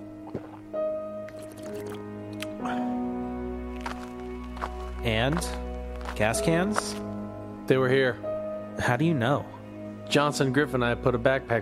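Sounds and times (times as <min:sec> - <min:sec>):
person chugging water from a bottle: 0:00.0 - 0:02.9
speech: 0:05.1 - 0:05.6, 0:06.2 - 0:07.1, 0:07.7 - 0:11.5.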